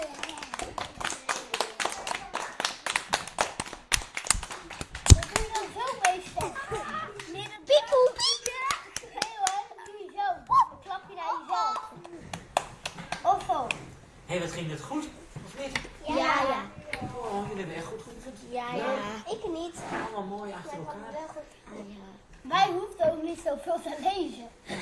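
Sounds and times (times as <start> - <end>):
excited children chattering: 0.0 - 3.0, 5.1 - 14.0, 15.6 - 24.8
children clapping for themselves: 0.0 - 10.0, 11.7 - 13.9.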